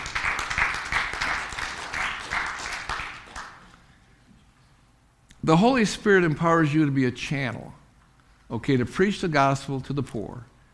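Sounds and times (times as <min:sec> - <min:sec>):
audience clapping hands in praise: 0:00.0 - 0:03.9
speech: 0:05.5 - 0:07.8, 0:08.5 - 0:10.5.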